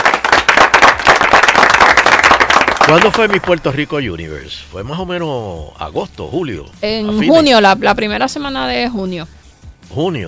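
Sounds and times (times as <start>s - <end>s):
applause: 0.0s - 3.8s
speech: 2.9s - 10.2s.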